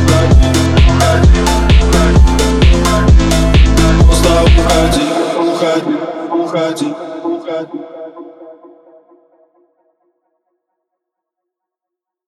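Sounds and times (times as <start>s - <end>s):
drift phonk remix: 0.0s - 9.5s.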